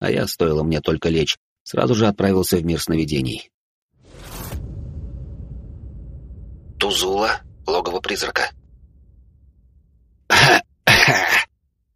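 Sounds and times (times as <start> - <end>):
speech: 0.0 - 3.6, 6.9 - 8.6, 10.3 - 11.4
loud coughing fit: 10.3 - 11.5.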